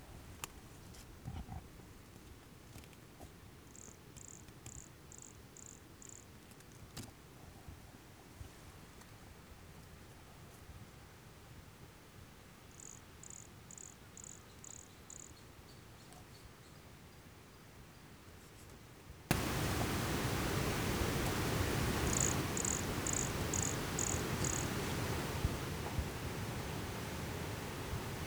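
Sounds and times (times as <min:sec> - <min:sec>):
faint clicks: 0:19.3 - 0:28.2
pumpkin toadlet calling: 0:19.3 - 0:28.2.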